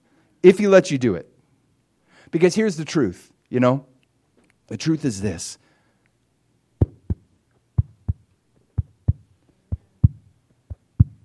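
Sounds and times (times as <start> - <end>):
speech: 0.4 - 1.3, 2.3 - 3.9, 4.7 - 5.6
faint low hum: 3.3 - 11.2
baby heartbeat recording: 6.8 - 11.2.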